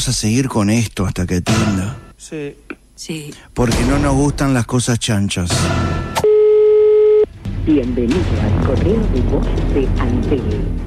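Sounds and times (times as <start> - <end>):
speech: 0.0 - 6.1, 7.7 - 10.8
recorded voicemail greeting: 6.2 - 7.3
telephone ringback tone during an outgoing call: 6.2 - 7.3.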